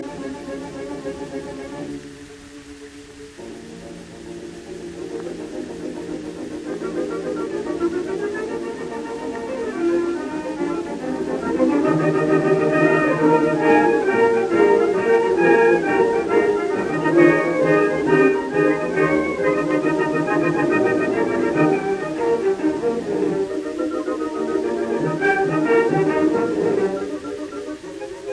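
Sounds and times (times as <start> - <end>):
orchestra playing a symphony scherzo: 0.0 - 28.3.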